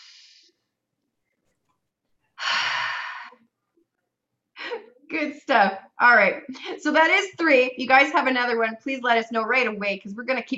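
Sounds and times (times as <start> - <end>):
deep breath during a guided group breathing exercise: 2.4 - 3.5
speech: 5.2 - 10.5.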